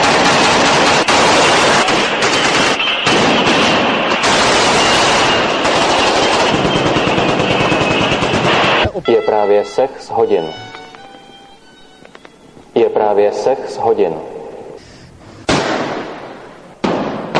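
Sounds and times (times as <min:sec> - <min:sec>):
machine gun fire from Warsaw Pact troops shooting at civilians: 0:00.0 - 0:08.9, 0:15.5 - 0:17.3
speech: 0:09.4 - 0:10.7, 0:12.8 - 0:14.3.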